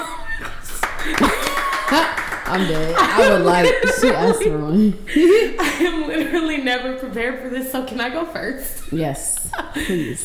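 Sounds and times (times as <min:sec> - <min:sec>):
laughter: 0:00.0 - 0:06.7, 0:09.3 - 0:10.2
hand claps: 0:00.4 - 0:03.5
speech: 0:01.9 - 0:10.2.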